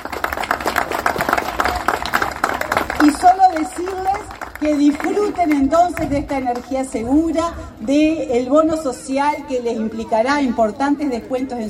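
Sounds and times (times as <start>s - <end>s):
audience clapping at a public celebration event: 0.0s - 6.7s
speech: 4.6s - 11.6s.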